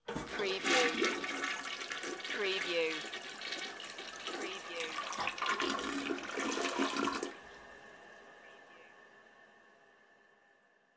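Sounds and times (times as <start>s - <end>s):
toilet flushing: 0.0s - 10.6s.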